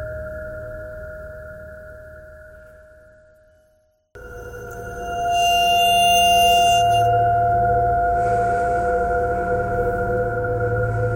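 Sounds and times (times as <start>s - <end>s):
bowed metal: 4.2s - 8.8s
ice bowed vibes: 4.2s - 11.0s.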